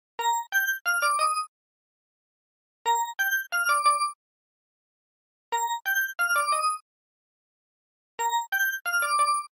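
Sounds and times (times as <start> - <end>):
ringtone: 0.2 - 1.5, 2.9 - 4.2, 5.5 - 6.8, 8.2 - 9.5.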